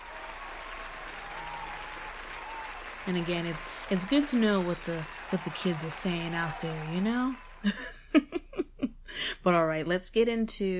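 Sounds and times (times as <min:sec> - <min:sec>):
applause: 0:00.0 - 0:08.1
speech: 0:03.1 - 0:08.4, 0:09.1 - 0:10.7.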